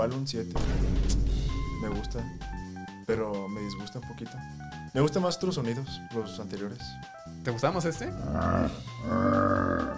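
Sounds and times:
speech: 0.0s - 1.2s, 1.8s - 9.9s
video game bear growl sound effect: 8.1s - 9.9s.

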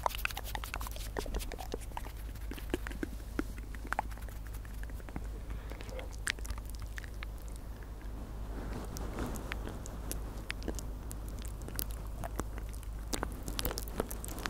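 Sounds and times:
wet mouth clicks and smacks: 0.0s - 8.2s, 8.8s - 14.4s
low hum: 0.1s - 14.4s.

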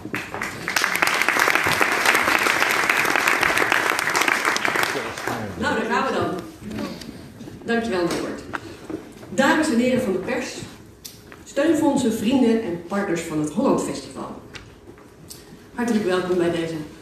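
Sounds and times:
audience applause at press presentation: 0.1s - 5.6s
speech: 7.7s - 8.3s, 9.7s - 10.7s, 11.6s - 14.3s, 15.8s - 16.9s.

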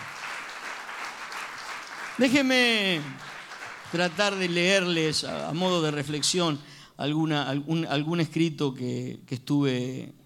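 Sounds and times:
audience applauding: 0.0s - 6.5s
speech: 2.2s - 3.3s, 3.9s - 10.2s.

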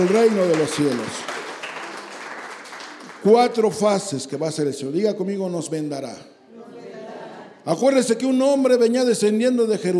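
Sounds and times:
speech: 0.0s - 1.3s, 3.2s - 6.4s, 7.6s - 9.9s
audience applause: 0.0s - 3.7s.

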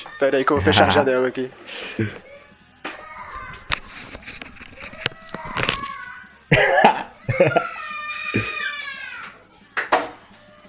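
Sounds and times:
speech: 0.2s - 2.3s, 7.4s - 7.7s
laughter: 0.6s - 1.3s, 6.5s - 8.7s
child screaming outside: 2.3s - 3.6s, 5.1s - 6.4s, 7.2s - 9.4s.

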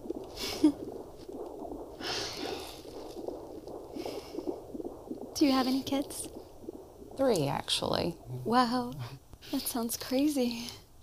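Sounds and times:
ultrasound heartbeat from a played video: 0.0s - 8.7s
hissy static: 0.0s - 10.7s
speech: 5.4s - 6.3s, 7.2s - 10.8s.

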